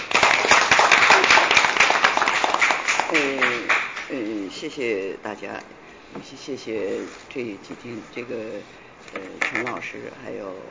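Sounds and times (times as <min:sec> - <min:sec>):
audience applause: 0:00.0 - 0:04.1
speech: 0:04.6 - 0:10.6.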